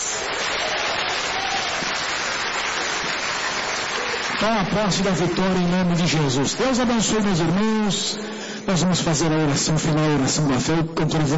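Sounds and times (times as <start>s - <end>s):
crowd applause: 0.0s - 6.4s
speech: 4.4s - 11.3s.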